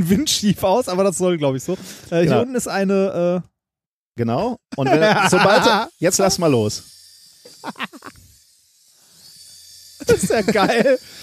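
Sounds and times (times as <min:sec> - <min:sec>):
speech: 0:00.0 - 0:03.5, 0:04.2 - 0:07.0, 0:07.6 - 0:08.1, 0:10.0 - 0:11.2
laughter: 0:04.7 - 0:05.9, 0:07.5 - 0:08.2, 0:10.0 - 0:11.2
small toy drone hovering with propellers: 0:04.9 - 0:11.2.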